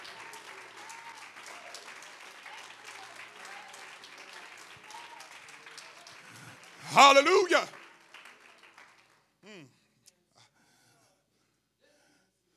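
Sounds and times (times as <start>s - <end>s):
audience clapping hands: 0.0s - 9.6s
speech: 6.9s - 7.8s.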